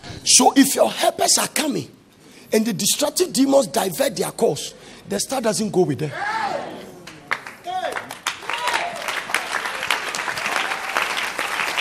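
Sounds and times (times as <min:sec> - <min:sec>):
speech: 0:00.3 - 0:06.4
audience clapping: 0:07.0 - 0:11.7.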